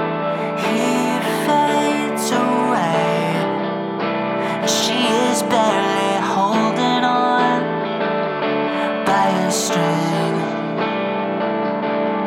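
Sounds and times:
acoustic music: 0:00.2 - 0:12.2.

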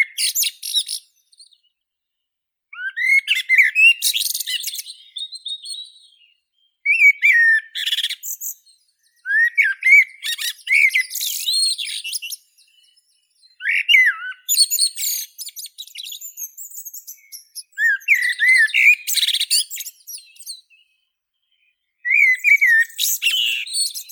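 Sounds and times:
blackbird Turdus merula: 0:00.0 - 0:24.1.

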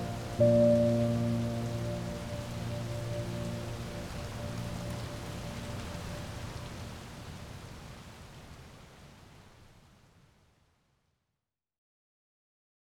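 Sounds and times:
deep sleep baby piano music: 0:00.0 - 0:06.2
rain: 0:00.0 - 0:11.0.

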